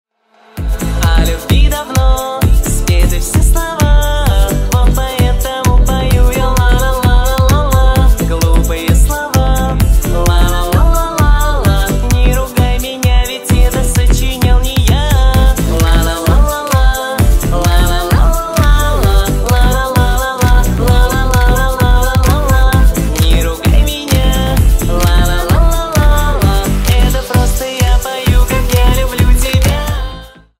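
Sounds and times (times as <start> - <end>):
remix music: 0.3 - 30.5.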